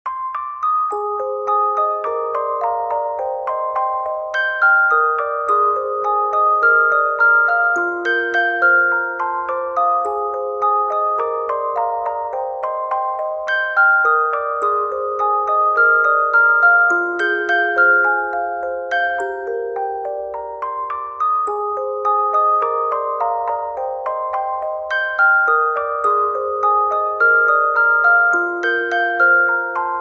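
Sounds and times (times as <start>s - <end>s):
music box: 0.0s - 29.9s.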